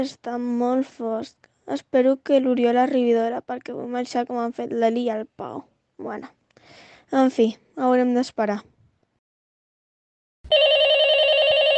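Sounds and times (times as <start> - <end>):
speech: 0.0 - 8.7
telephone ringing with a call to Ràdio Molins de Rei: 10.5 - 11.7.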